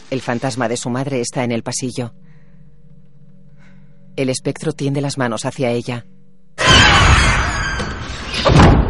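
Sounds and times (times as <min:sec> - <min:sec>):
speech: 0:00.1 - 0:02.3, 0:04.2 - 0:06.8
door slamming shut: 0:06.6 - 0:08.8.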